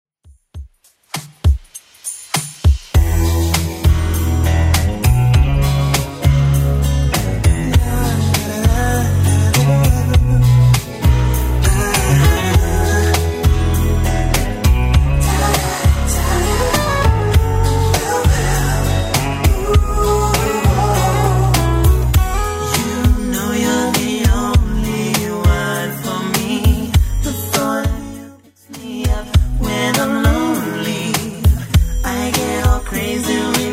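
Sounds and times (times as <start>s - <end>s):
90s style beat at 100 bpm: 0.2s - 33.7s.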